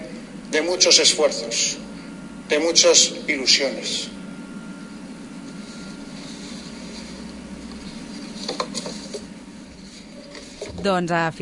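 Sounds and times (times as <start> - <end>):
speech: 0.5 - 1.9, 2.5 - 4.2, 10.8 - 11.3
shuffling papers: 5.5 - 10.9.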